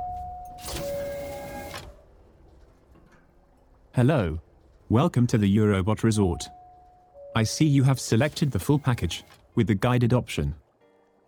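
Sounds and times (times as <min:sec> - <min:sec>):
elevator door sliding open with motorized whir: 0:00.0 - 0:07.2, 0:08.0 - 0:09.5
low hum: 0:00.0 - 0:11.2
speech: 0:04.0 - 0:06.6, 0:07.4 - 0:10.6.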